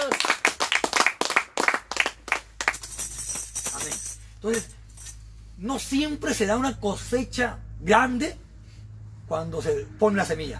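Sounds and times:
hands clapping: 0.0s - 3.1s
speech: 4.4s - 4.8s, 5.6s - 8.4s, 9.3s - 10.5s.

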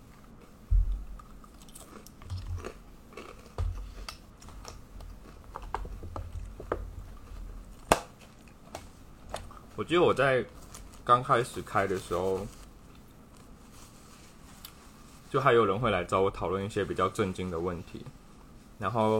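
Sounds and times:
chewing and crunching cookies: 1.2s - 6.6s
speech: 9.8s - 12.6s, 15.3s - 18.2s, 18.8s - 19.1s.

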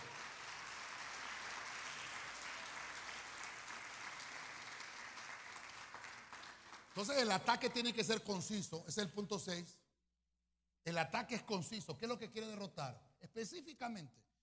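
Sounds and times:
audience applauding: 0.0s - 7.3s
speech: 7.0s - 9.8s, 10.9s - 14.3s.

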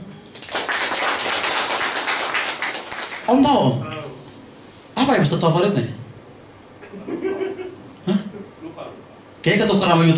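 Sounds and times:
audience clapping: 0.3s - 3.4s
speech: 3.3s - 3.9s, 5.1s - 6.0s, 9.4s - 10.1s
laughter: 6.8s - 8.8s.

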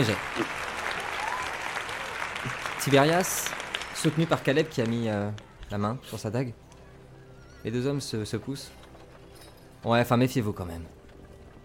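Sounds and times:
speech: 0.0s - 0.4s, 2.8s - 6.6s, 7.6s - 8.8s, 9.8s - 11.0s
applause: 0.0s - 5.7s.

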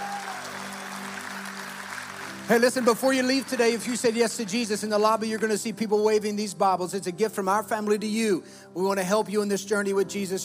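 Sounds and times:
audience applause: 0.0s - 5.5s
speech: 2.5s - 10.4s.

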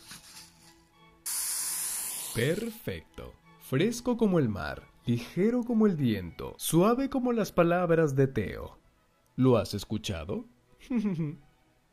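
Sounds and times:
water sprayed from a spray bottle: 1.3s - 2.8s
speech: 2.4s - 8.8s, 9.4s - 11.9s.

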